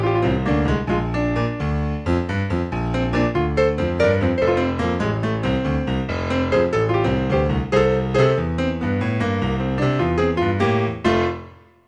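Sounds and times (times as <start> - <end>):
rocking boogie music: 0.0 - 11.5.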